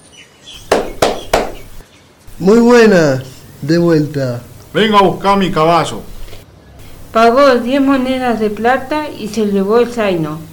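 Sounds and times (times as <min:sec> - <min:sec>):
hammer blows on metal at a blacksmith's forge: 0:00.6 - 0:02.5
faint hum: 0:00.6 - 0:10.5
speech: 0:02.4 - 0:06.1, 0:07.1 - 0:10.5.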